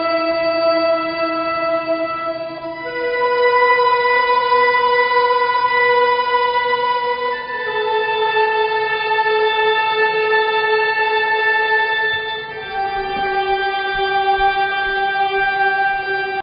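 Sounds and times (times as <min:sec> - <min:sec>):
ceremonial instrumental music without drums: 0:00.0 - 0:16.4.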